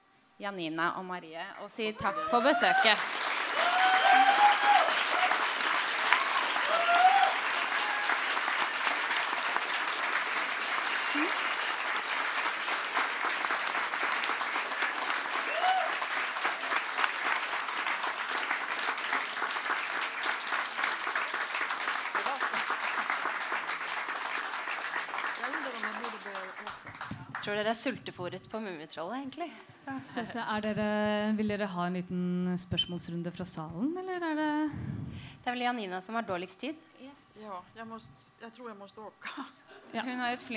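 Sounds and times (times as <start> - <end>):
speech: 0.4 - 3.8, 27.5 - 34.5, 35.5 - 36.9, 37.5 - 40.5
vocal whoops: 2.0 - 5.4, 6.6 - 8.2, 11.1 - 11.5, 15.4 - 16.1
audience applause: 2.0 - 27.8.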